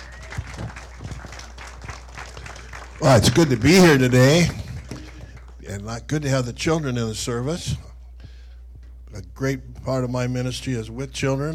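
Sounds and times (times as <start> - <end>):
small audience clapping for a guest speaker at a morning service: 0.0 - 5.7
speech: 3.0 - 4.6, 5.7 - 7.9, 9.2 - 11.5.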